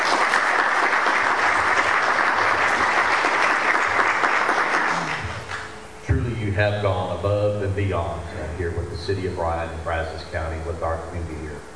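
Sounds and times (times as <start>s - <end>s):
round of applause: 0.0s - 5.7s
speech: 6.6s - 11.5s.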